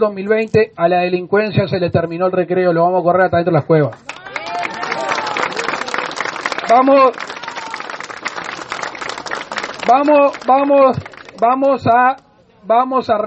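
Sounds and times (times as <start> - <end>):
speech: 0.0 - 4.2, 6.7 - 7.3, 9.9 - 13.2
audience applause: 4.0 - 11.8.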